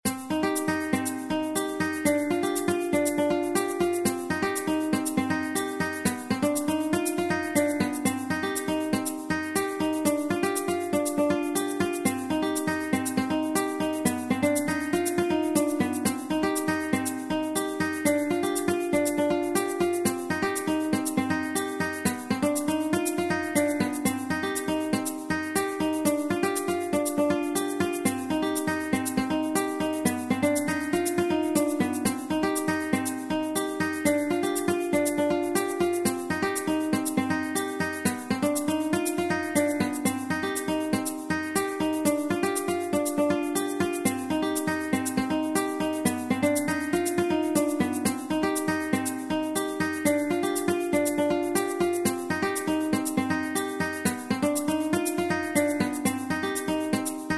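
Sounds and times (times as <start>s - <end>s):
Spanish guitar: 0.0s - 57.3s.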